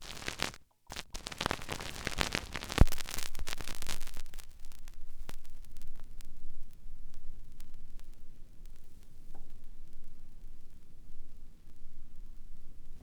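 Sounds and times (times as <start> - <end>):
vinyl crackle: 0.0 - 13.0.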